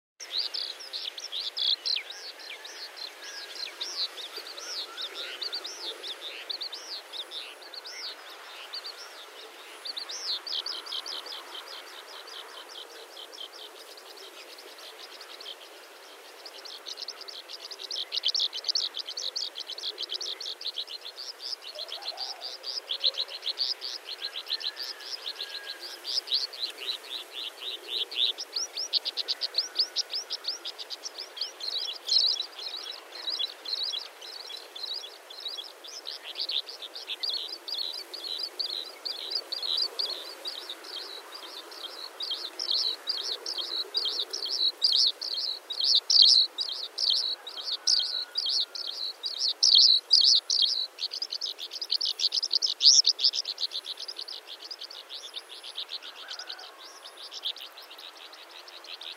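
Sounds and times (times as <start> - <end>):
nature sounds in Nawadankulam Sri Lanka: 0.2 - 59.1.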